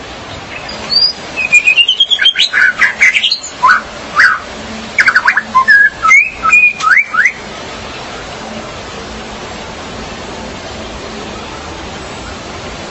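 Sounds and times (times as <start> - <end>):
magpie-robin or shama singing: 0.5 - 7.4.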